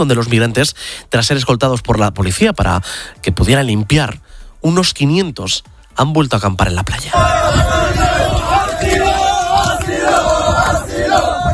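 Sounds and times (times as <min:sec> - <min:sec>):
speech: 0:00.0 - 0:09.0
large crowd chanting asylum: 0:07.1 - 0:11.5.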